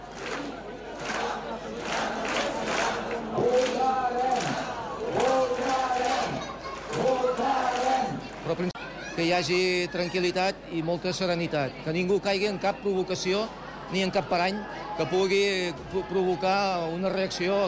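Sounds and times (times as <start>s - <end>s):
protest crowd chanting slogans: 0.0s - 8.8s
speech: 8.6s - 17.6s.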